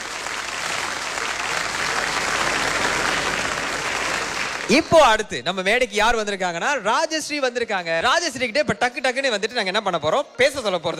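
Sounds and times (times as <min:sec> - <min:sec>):
audience applause: 0:00.0 - 0:05.2
speech: 0:04.7 - 0:10.9.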